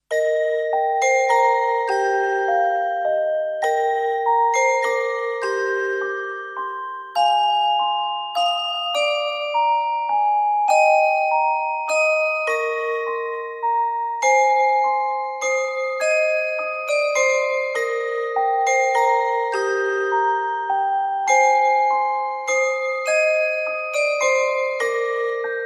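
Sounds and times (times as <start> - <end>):
carillon playing a Christmas carol: 0.0 - 25.6.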